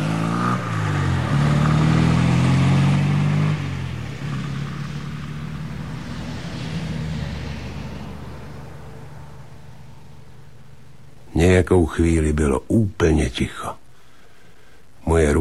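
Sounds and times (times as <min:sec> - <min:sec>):
car driving off toward the highway: 0:00.0 - 0:11.2
speech: 0:11.4 - 0:13.8, 0:15.0 - 0:15.3.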